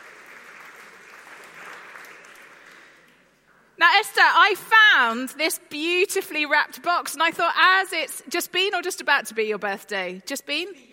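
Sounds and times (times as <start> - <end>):
audience applause: 0.0 - 3.0
speech: 3.8 - 10.9.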